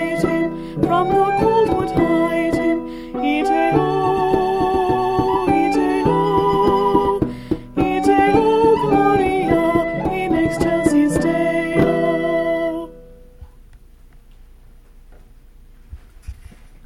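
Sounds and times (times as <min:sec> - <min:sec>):
person singing a medieval Christmas carol: 0:00.0 - 0:13.0
medieval Christmas carol performed on keyboard: 0:00.0 - 0:13.2.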